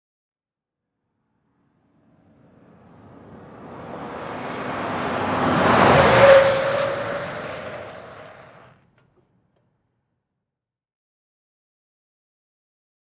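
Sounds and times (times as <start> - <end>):
Ford Expedition driving fast around a corner: 1.8 - 9.0.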